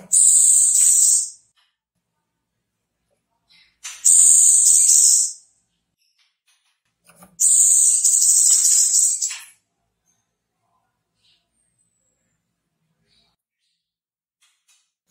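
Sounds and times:
orange-headed thrush giving a sharp high chirp and buzzy warble burst: 0.1s - 1.4s, 4.1s - 5.4s, 7.4s - 9.4s.

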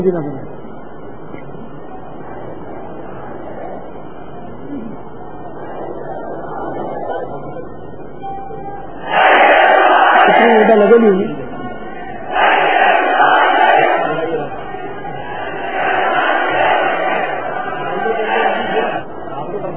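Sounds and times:
speech: 0.0s - 0.6s
crowd chanting a religious slogan at a Sunni religious gathering: 9.0s - 19.3s.

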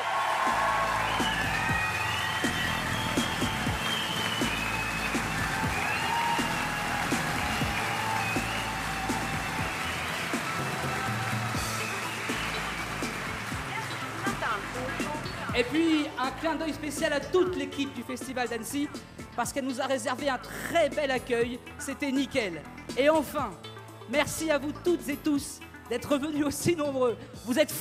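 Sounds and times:
audience applause: 0.0s - 15.8s
speech: 15.6s - 27.8s.

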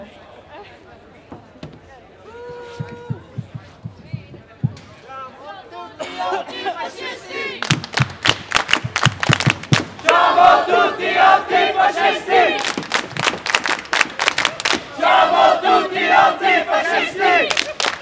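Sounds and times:
crowd shouting: 5.5s - 7.8s, 10.0s - 12.9s, 14.4s - 18.0s
crowd clapping in unison: 7.5s - 10.5s, 12.3s - 15.8s, 17.2s - 18.0s.

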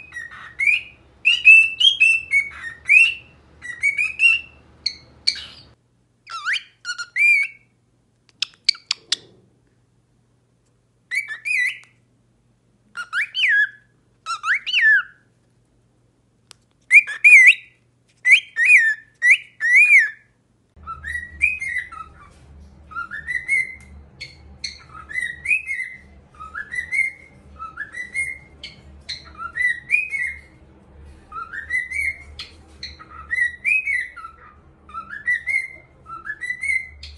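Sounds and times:
cockatiel whistling: 0.0s - 7.7s, 11.1s - 11.9s, 13.0s - 15.2s, 16.9s - 30.5s, 31.3s - 37.1s.

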